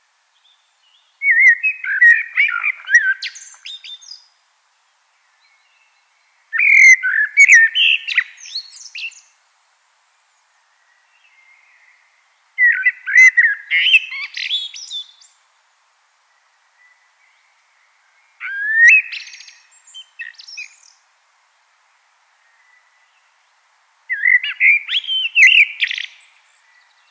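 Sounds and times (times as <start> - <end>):
common blackbird song: 0.4 - 4.3, 5.3 - 9.3, 10.8 - 15.4, 16.8 - 21.0, 24.1 - 27.1.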